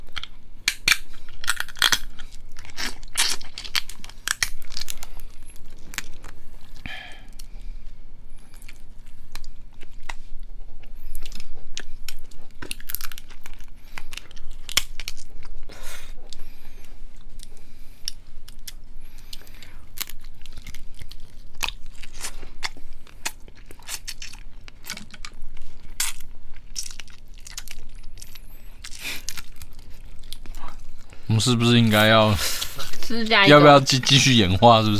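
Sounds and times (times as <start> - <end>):
crab shell being crunched and chewed: 0.0 - 7.4, 11.2 - 15.7, 17.3 - 31.0
speech: 31.4 - 34.9.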